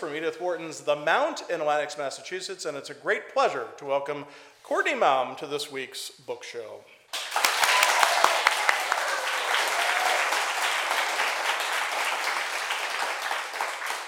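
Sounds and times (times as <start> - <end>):
speech: 0.0 - 7.4
person clapping: 7.1 - 14.0.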